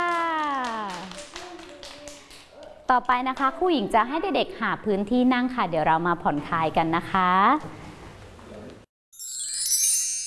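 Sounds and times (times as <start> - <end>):
young children in a class clapping for themselves: 0.0 - 2.6
speech: 2.9 - 7.8.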